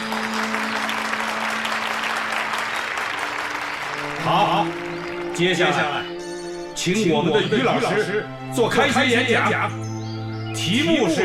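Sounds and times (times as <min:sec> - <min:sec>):
warm applause: 0:00.0 - 0:06.7
speech: 0:05.4 - 0:06.1, 0:06.8 - 0:09.8, 0:10.6 - 0:11.2.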